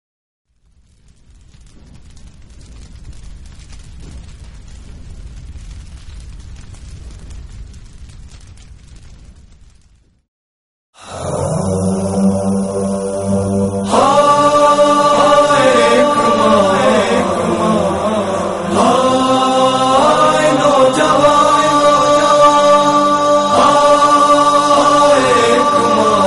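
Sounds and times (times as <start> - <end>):
noha lament recitation: 11.0 - 26.2.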